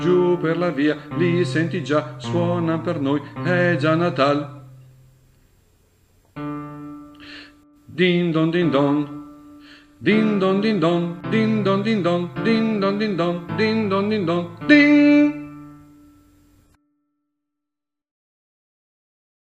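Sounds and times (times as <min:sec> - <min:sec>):
soprano singing carols: 0:00.0 - 0:04.7, 0:07.7 - 0:15.8.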